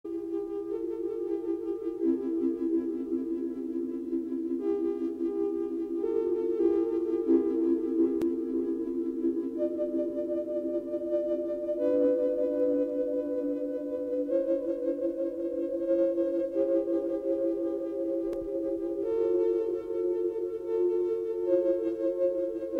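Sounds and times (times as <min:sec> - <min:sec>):
Christmas songs on Buchla synthesizer: 0:00.1 - 0:22.7.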